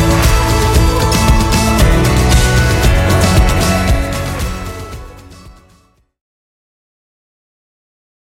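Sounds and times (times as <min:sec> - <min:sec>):
music: 0:00.0 - 0:06.2.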